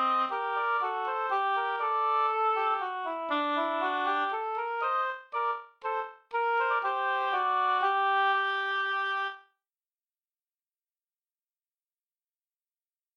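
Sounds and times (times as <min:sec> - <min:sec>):
two oboes playing a minuet: 0:00.0 - 0:09.5.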